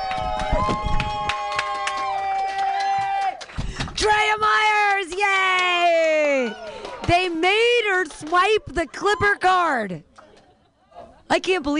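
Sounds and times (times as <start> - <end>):
audience clapping: 0.0 - 8.6
audience cheering: 0.0 - 9.7
speech: 7.1 - 10.1, 11.3 - 11.7.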